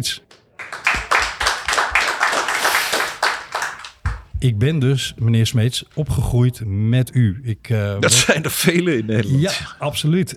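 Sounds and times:
speech: 0:00.0 - 0:00.2, 0:04.4 - 0:10.3
rhythmic crowd clapping: 0:00.2 - 0:04.4
laughter: 0:00.6 - 0:04.2, 0:08.0 - 0:09.8.

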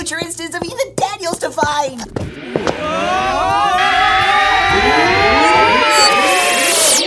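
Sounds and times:
speech: 0:00.1 - 0:03.3
time-machine jump sound effect with warbling synthetic tones and gliding sweeps: 0:02.4 - 0:07.0.

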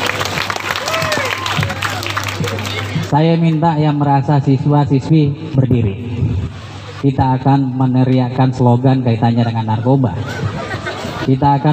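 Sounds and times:
students' applause at a school declaration event at SMAN 2 Sidrap: 0:00.0 - 0:03.1
speech: 0:03.1 - 0:06.1, 0:07.0 - 0:10.5, 0:11.2 - 0:11.7
laughter: 0:09.4 - 0:11.5.

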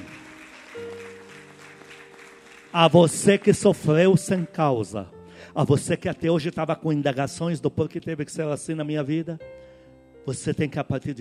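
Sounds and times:
audience applause: 0:00.0 - 0:04.0
speech: 0:02.8 - 0:09.6, 0:10.3 - 0:11.2.

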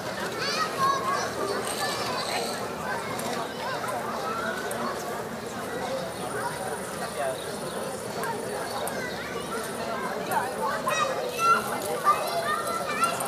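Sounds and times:
children shouting in a playground: 0:00.0 - 0:05.0, 0:08.5 - 0:13.2
children chattering and calling in a playground on a summer evening in Berlin: 0:00.0 - 0:13.2.

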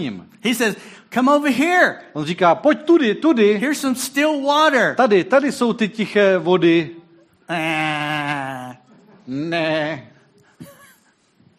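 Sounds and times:
speech: 0:00.0 - 0:10.1
person imitating a sheep's bleat: 0:07.5 - 0:08.8.

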